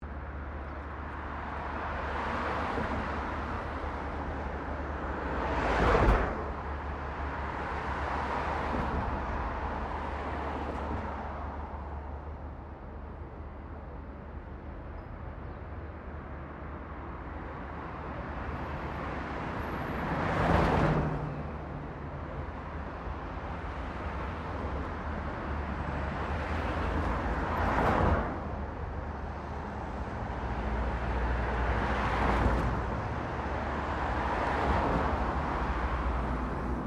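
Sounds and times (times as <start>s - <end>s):
traffic cars passing by: 0.0s - 36.8s.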